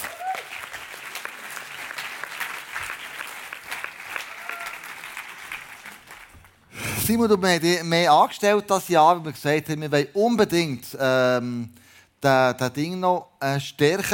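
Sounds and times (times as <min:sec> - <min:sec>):
audience applause: 0:00.0 - 0:06.6
speech: 0:07.1 - 0:14.1.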